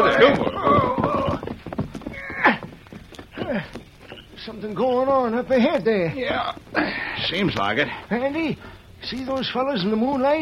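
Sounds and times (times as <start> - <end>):
horse whinny: 0.0 - 2.7
horse hooves clip-clopping: 0.0 - 10.4
speech: 4.6 - 10.4.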